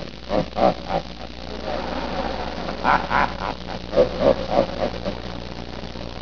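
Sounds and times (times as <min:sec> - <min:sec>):
person laughing: 0:01.5 - 0:05.2.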